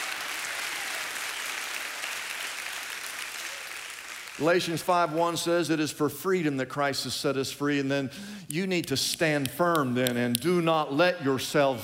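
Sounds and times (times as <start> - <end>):
audience clapping: 0.0 - 5.4
speech: 4.4 - 11.8.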